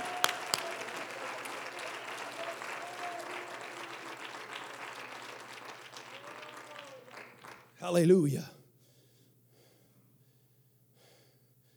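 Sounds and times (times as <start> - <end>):
audience clapping hands: 0.0 - 8.5
speech: 7.8 - 8.6.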